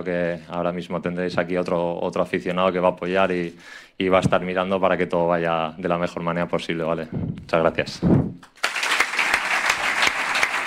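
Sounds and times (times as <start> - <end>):
speech: 0.0 - 8.6
crowd applause: 8.6 - 10.6.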